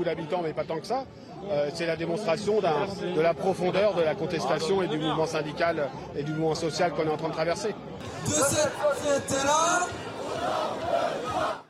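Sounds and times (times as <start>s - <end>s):
speech: 0.0s - 11.6s
large protest crowd chanting slogans: 8.0s - 11.6s.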